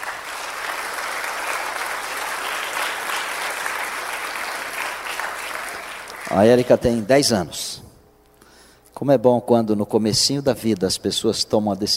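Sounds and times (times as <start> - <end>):
audience applause: 0.0 - 7.0
speech: 6.4 - 7.8, 9.0 - 11.9.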